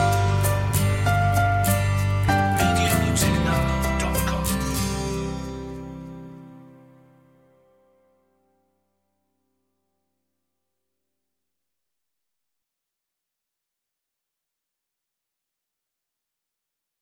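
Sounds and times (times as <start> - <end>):
instrumental music: 0.0 - 8.8.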